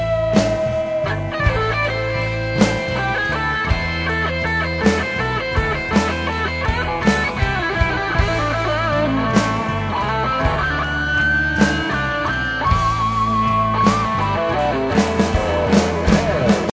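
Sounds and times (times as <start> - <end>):
guitar solo: 0.0 - 16.7.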